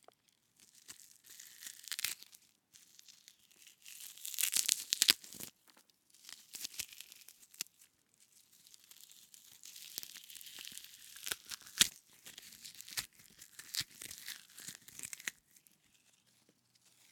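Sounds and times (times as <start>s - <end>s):
frozen celery breaking and cracking: 1.4s - 2.3s, 3.7s - 5.5s, 9.9s - 15.4s.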